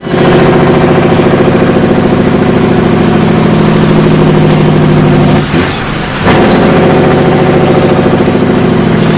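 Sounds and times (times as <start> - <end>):
vehicles throttling off: 0.0 - 9.1.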